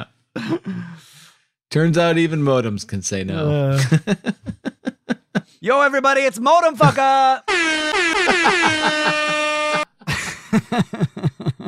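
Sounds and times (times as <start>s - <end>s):
speech: 0.4s - 4.6s, 5.5s - 9.4s, 10.5s - 11.1s
laughter: 3.6s - 5.5s, 8.1s - 11.6s
horn blast: 7.5s - 9.9s.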